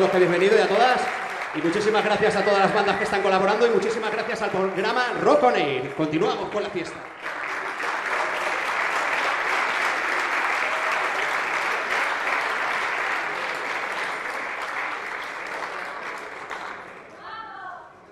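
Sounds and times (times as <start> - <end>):
speech: 0.0 - 7.2
audience applause: 0.0 - 17.2.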